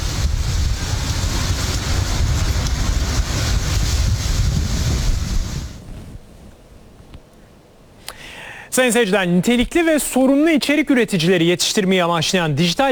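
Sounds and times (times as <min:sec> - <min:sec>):
strong wind of a forming tornado roaring into a camera microphone: 0:00.0 - 0:08.7
speech: 0:08.8 - 0:12.9.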